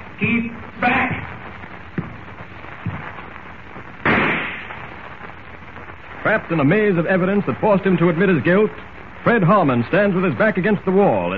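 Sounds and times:
steady noisy background: 0.0s - 11.3s
speech: 0.2s - 1.3s, 6.3s - 11.3s
softer pops: 1.1s - 5.7s
rifle shot sound effect in a radio drama: 4.0s - 4.8s.

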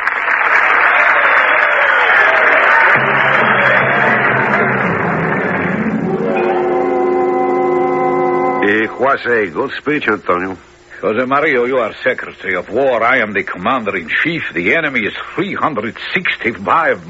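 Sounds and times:
audience applauding: 0.0s - 9.0s
speech: 9.0s - 17.0s.

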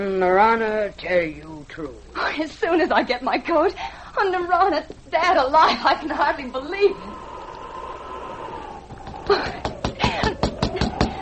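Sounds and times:
speech: 0.0s - 7.2s, 9.3s - 9.7s
knocking on a door: 8.9s - 11.2s.

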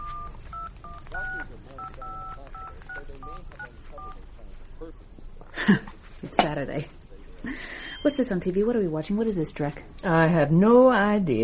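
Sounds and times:
telephone keypad dialing tones: 0.0s - 3.4s
hum: 0.0s - 11.4s
speech: 3.4s - 5.9s, 6.5s - 11.4s.

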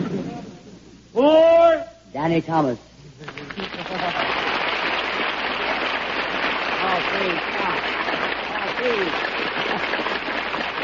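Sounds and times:
speech: 1.2s - 1.5s, 2.2s - 2.9s, 8.8s - 10.1s
audience applause: 3.3s - 10.8s.

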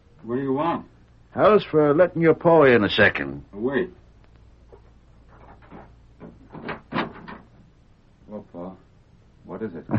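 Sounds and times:
speech: 0.2s - 4.0s, 9.6s - 9.9s
door opening: 5.4s - 7.5s.

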